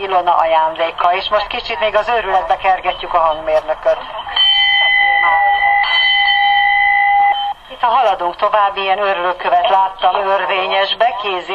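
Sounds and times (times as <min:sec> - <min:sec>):
speech: 0:00.0 - 0:04.4, 0:07.8 - 0:11.5
bell ringing: 0:02.8 - 0:07.8.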